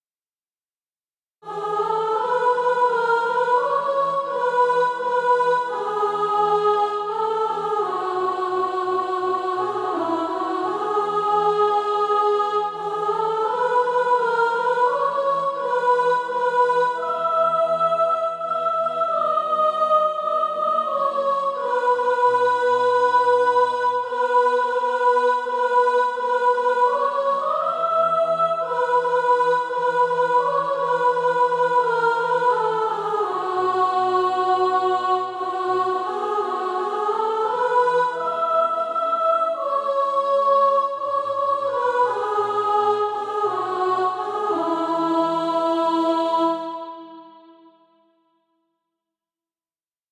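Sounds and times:
soprano singing: 1.4s - 47.4s.

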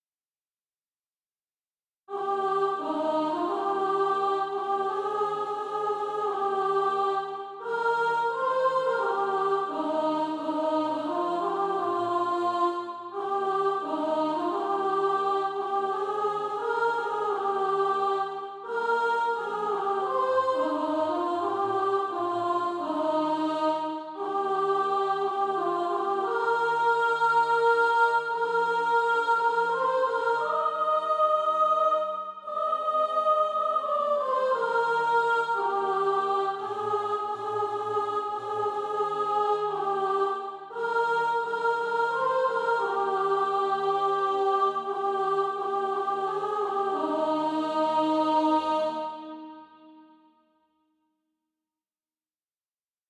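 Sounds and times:
soprano singing practice music: 2.1s - 49.6s.

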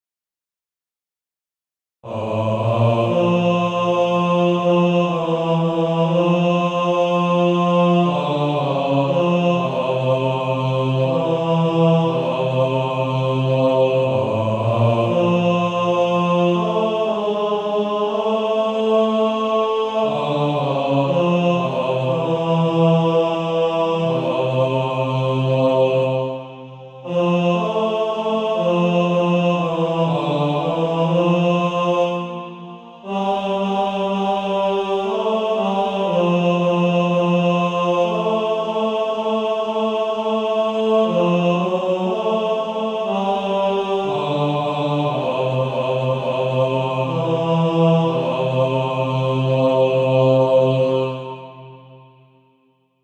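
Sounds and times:
male choir singing: 2.0s - 52.4s.

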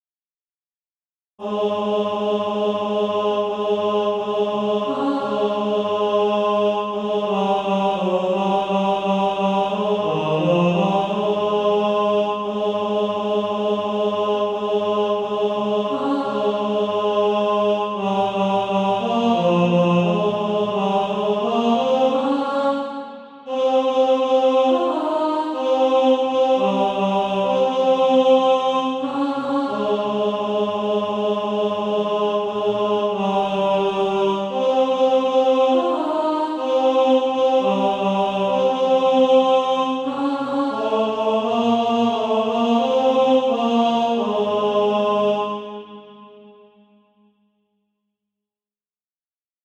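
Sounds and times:
tenor singing: 1.4s - 45.8s.

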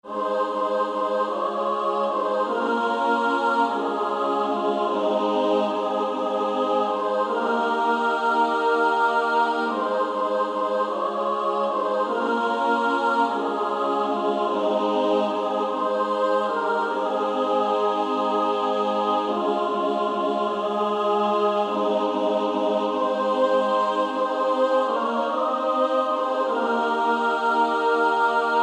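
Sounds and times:
female SSAA choir singing: 0.0s - 28.6s.

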